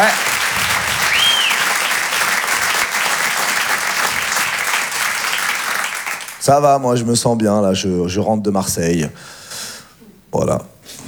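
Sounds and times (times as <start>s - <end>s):
audience applauding: 0.0s - 6.7s
speech: 6.5s - 9.4s, 10.3s - 10.7s.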